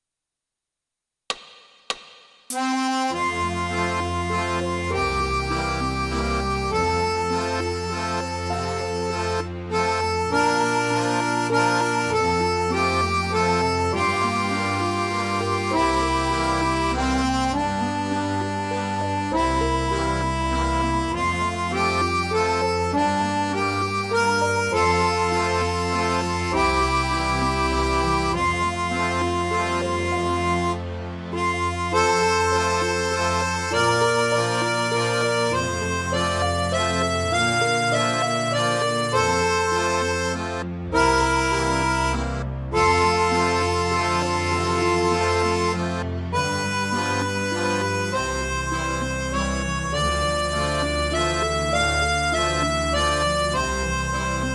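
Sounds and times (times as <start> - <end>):
accordion playing tutti: 2.5 - 54.5.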